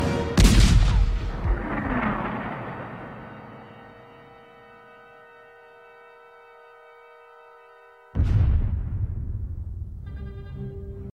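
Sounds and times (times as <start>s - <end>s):
bomb test explosion: 0.4s - 4.3s, 8.2s - 10.0s.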